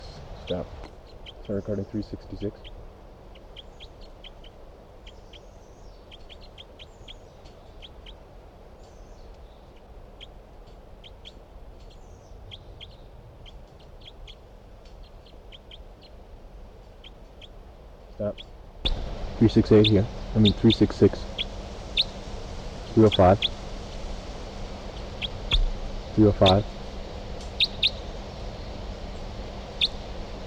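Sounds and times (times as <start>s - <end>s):
forest bird calling: 0.0s - 16.2s, 16.8s - 30.4s
steady low hum: 0.0s - 30.4s
speech: 0.5s - 0.9s, 1.5s - 2.8s, 19.4s - 21.3s, 23.0s - 23.6s, 26.2s - 26.7s.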